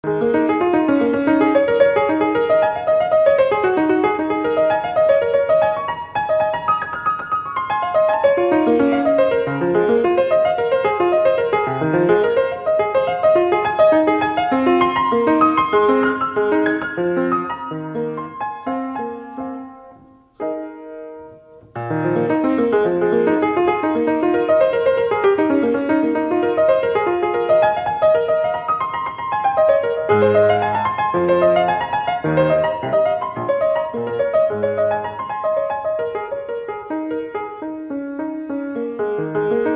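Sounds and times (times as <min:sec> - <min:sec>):
Vietnamese instrumental music: 0:00.0 - 0:39.7.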